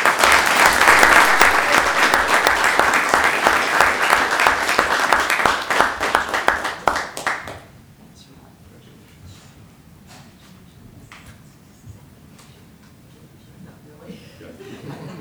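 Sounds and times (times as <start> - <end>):
audience applause: 0.0 - 7.7
laughter: 14.1 - 15.1.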